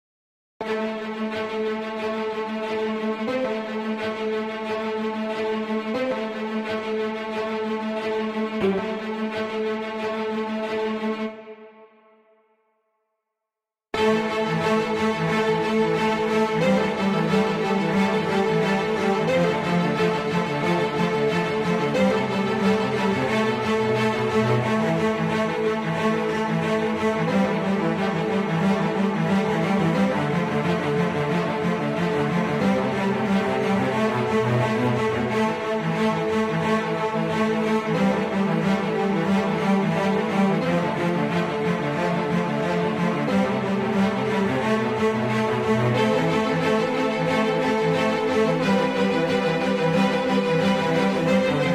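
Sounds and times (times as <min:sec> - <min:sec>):
violins playing: 0:00.6 - 0:11.6, 0:14.0 - 0:51.7.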